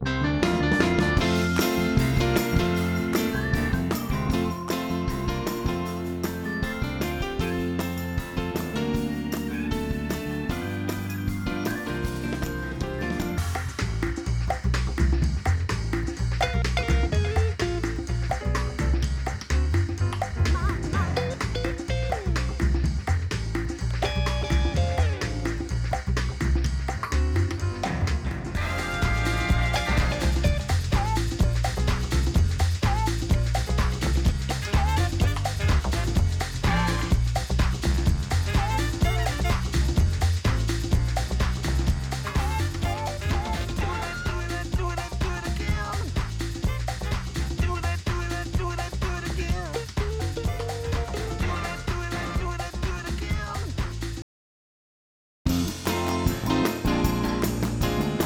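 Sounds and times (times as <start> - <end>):
music: 0.0 - 54.2, 55.5 - 58.2.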